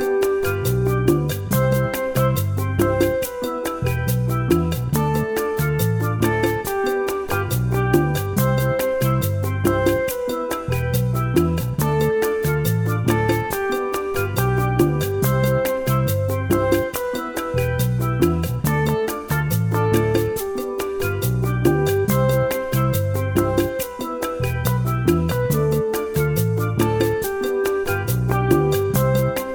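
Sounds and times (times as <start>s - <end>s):
Caribbean calypso backing track playing a descending scale: 0.0s - 29.5s.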